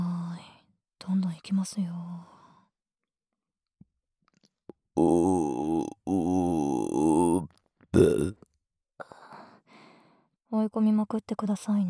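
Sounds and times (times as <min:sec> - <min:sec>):
speech: 0:01.0 - 0:02.4, 0:05.0 - 0:05.6, 0:10.6 - 0:11.8
burping: 0:05.0 - 0:08.4.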